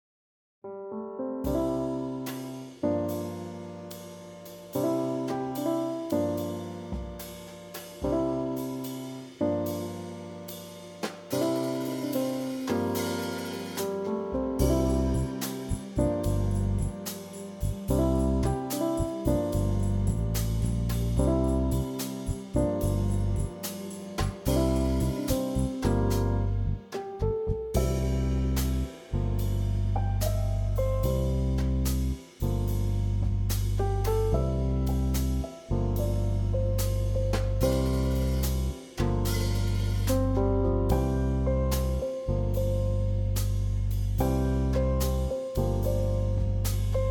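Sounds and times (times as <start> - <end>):
slow swing jazz: 1.4 - 47.1.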